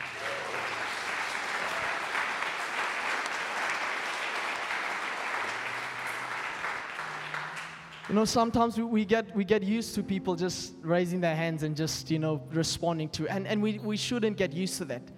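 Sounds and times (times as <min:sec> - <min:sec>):
crowd clapping: 0:00.0 - 0:08.6
speech: 0:08.1 - 0:15.1.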